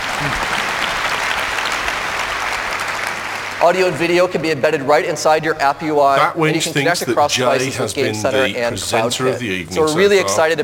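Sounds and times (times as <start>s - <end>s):
sustained applause from a large audience: 0.0s - 4.4s
speech: 3.6s - 10.6s.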